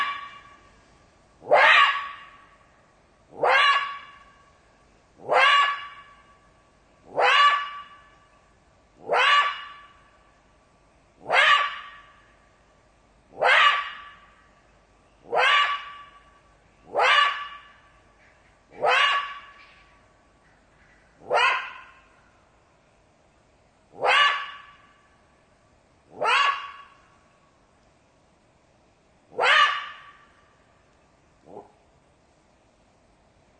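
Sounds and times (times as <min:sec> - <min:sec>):
jackal yelping and wailing: 0:00.0 - 0:00.6, 0:01.4 - 0:02.4, 0:03.3 - 0:04.2, 0:05.2 - 0:06.1, 0:07.1 - 0:08.0, 0:09.0 - 0:09.8, 0:11.2 - 0:12.1, 0:13.4 - 0:14.2, 0:15.2 - 0:16.2, 0:16.9 - 0:17.7, 0:18.7 - 0:19.8, 0:21.2 - 0:22.1, 0:24.0 - 0:24.8, 0:26.1 - 0:27.0, 0:29.3 - 0:30.3.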